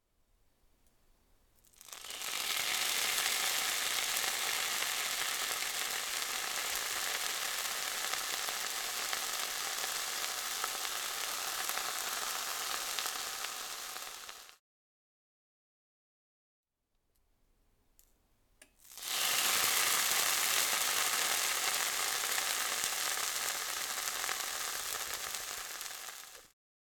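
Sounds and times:
meat frying: 1.6s - 14.6s, 18.8s - 26.6s.

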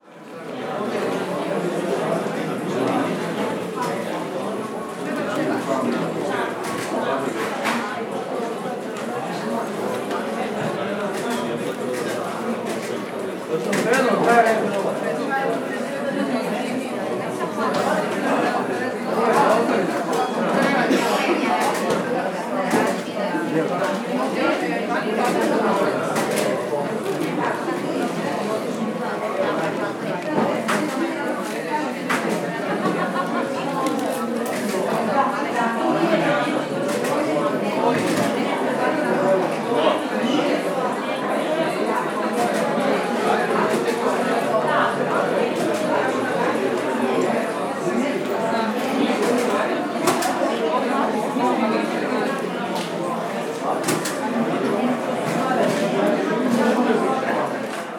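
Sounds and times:
courthouse lobby ambience: 0.0s - 57.9s.

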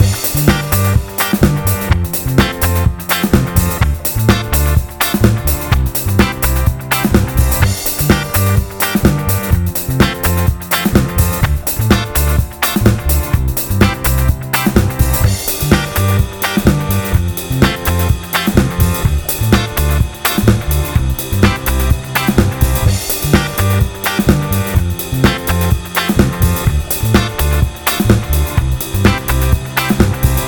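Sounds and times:
disco pop loop: 0.0s - 30.4s.

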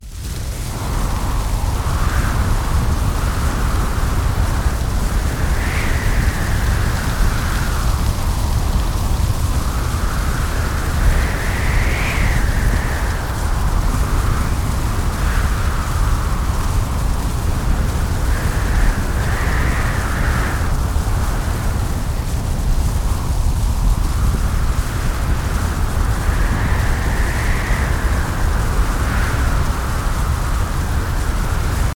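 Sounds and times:
designed hurricane wind in a forest: 0.0s - 31.9s.

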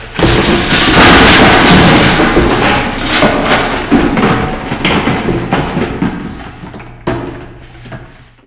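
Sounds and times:
miscellaneous destruction sounds: 0.0s - 6.1s.

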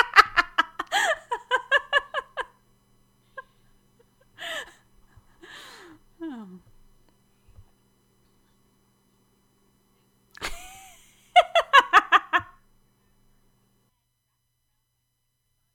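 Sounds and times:
person laughing: 0.0s - 2.6s, 3.4s - 6.6s, 10.4s - 12.6s.

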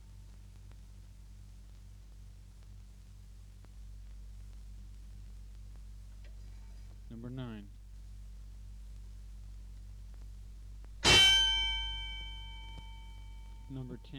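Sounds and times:
boxing fight bell: 11.0s - 14.1s.

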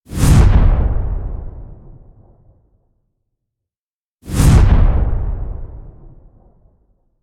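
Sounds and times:
fast explosive whoosh: 0.1s - 2.3s, 4.2s - 6.6s.

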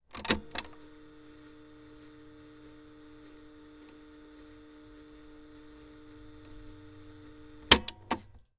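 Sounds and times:
cassette tape deck rewinding with slow start and stop: 0.0s - 8.4s
cassette tape deck clicks: 0.1s - 0.8s, 6.2s - 8.4s.

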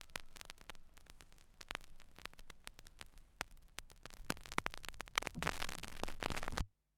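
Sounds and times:
record deck needle lifting up: 0.0s - 6.7s.

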